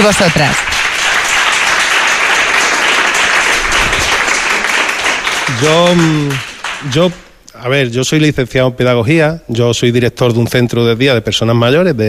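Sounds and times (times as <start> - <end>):
speech: 0.0 - 0.7, 5.5 - 12.0
audience applause: 0.0 - 7.3.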